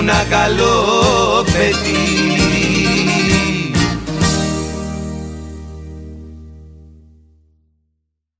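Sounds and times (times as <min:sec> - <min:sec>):
zeibekiko dance music: 0:00.0 - 0:05.8.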